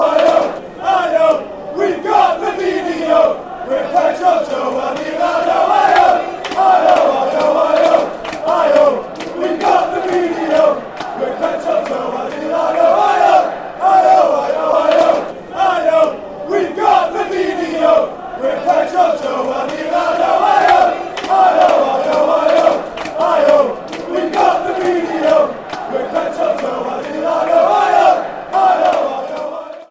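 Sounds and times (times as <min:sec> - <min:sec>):
fans chanting: 0:00.0 - 0:29.8.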